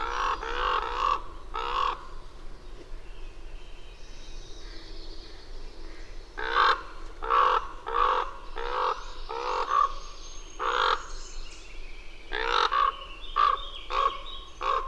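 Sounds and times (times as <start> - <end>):
bird cawing hoarsely: 0.0 - 2.2, 5.9 - 11.2, 12.3 - 14.8.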